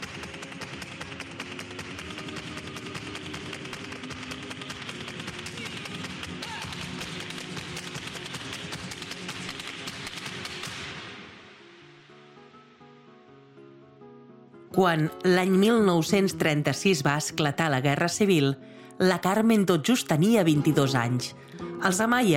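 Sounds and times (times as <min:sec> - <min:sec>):
flamenco dancer's heel taps on wooden stage: 0:00.0 - 0:11.0
speech: 0:14.8 - 0:22.3.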